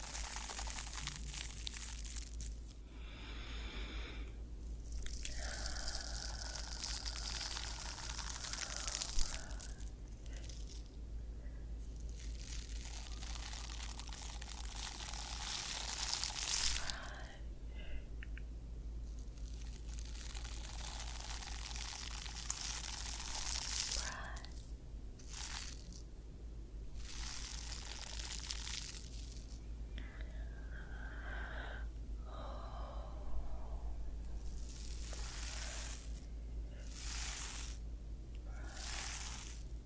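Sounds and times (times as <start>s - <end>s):
scalp massage rubs and scratches: 0.0s - 2.8s, 4.6s - 11.0s, 11.9s - 17.2s, 19.1s - 26.0s, 27.0s - 29.6s, 34.3s - 37.8s, 38.6s - 39.8s
low steady hum: 0.0s - 39.8s
faint breaths: 2.1s - 12.5s, 16.5s - 18.3s, 23.2s - 24.7s, 29.9s - 39.8s.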